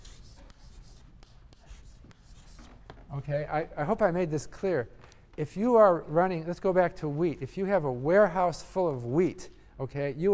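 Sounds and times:
writing a term on a board during a lecture: 0.0 - 3.0
low steady hiss: 0.0 - 10.3
speech: 3.1 - 10.3.

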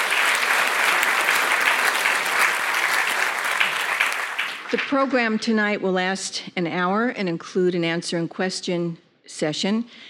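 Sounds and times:
audience applause at an evening event: 0.0 - 5.1
speech: 4.7 - 10.0.

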